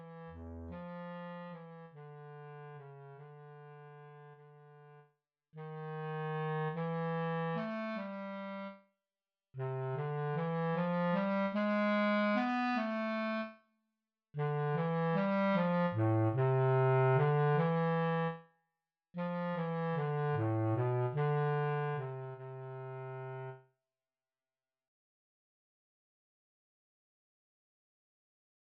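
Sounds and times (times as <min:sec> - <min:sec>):
bass clarinet etude: 0:00.0 - 0:05.0, 0:05.6 - 0:08.8, 0:09.6 - 0:13.6, 0:14.4 - 0:18.4, 0:19.2 - 0:23.6.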